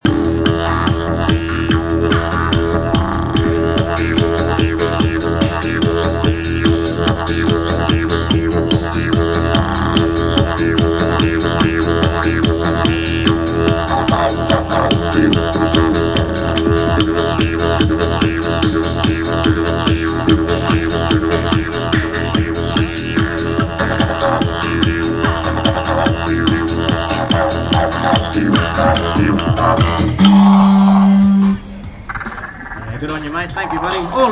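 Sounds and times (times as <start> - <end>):
didgeridoo: 0.0 - 34.3.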